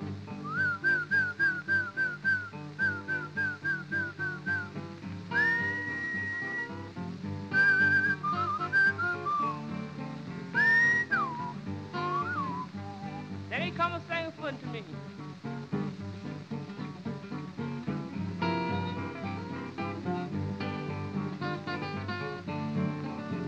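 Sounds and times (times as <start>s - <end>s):
instrumental backing music: 0.0s - 23.4s
person whistling to call a horse: 0.4s - 4.7s, 5.3s - 6.8s, 7.5s - 9.7s, 10.6s - 13.3s.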